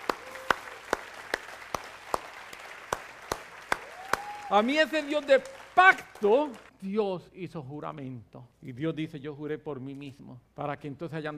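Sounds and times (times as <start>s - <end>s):
audience applause: 0.0s - 6.7s
speech: 4.5s - 11.3s.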